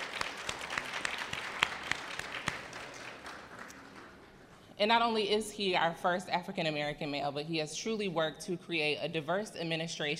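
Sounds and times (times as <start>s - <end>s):
audience hand clapping: 0.0s - 4.7s
speech: 4.8s - 10.1s.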